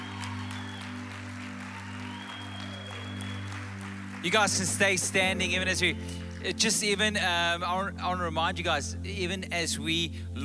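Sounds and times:
congregation applauding in celebration at a church service: 0:00.0 - 0:07.2
speech: 0:04.2 - 0:10.4.

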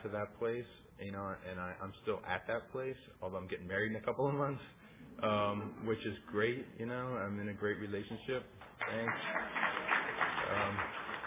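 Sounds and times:
speech: 0:00.0 - 0:09.6
audience applause: 0:08.7 - 0:11.2.

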